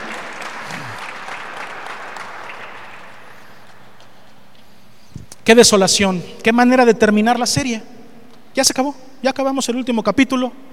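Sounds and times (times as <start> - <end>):
audience applauding: 0.0 - 4.3
speech: 5.5 - 8.0, 8.6 - 10.7.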